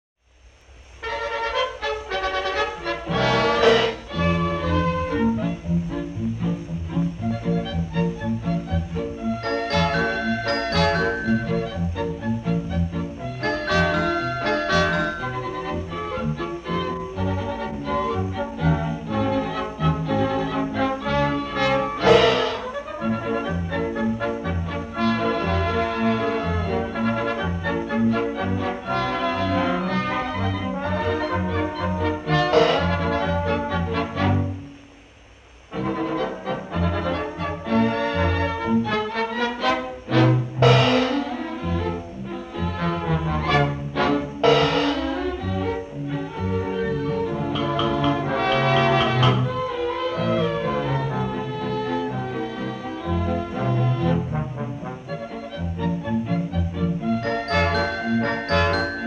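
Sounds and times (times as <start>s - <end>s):
Viennese orchestra playing: 1.0s - 34.6s, 35.7s - 59.0s.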